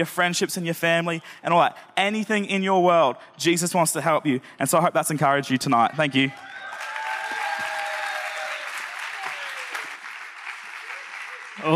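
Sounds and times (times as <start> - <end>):
speech: 0.0 - 6.5
audience clapping: 6.2 - 11.7
faint tonal whistles and cheers: 6.4 - 10.0.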